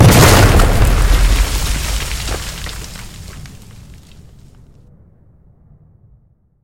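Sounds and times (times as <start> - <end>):
howitzer shell hitting its target: 0.0 - 4.2.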